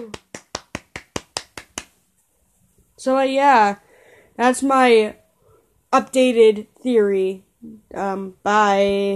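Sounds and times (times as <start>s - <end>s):
self-applause: 0.1s - 1.9s
speech: 3.0s - 3.8s, 4.4s - 5.2s, 5.9s - 9.1s.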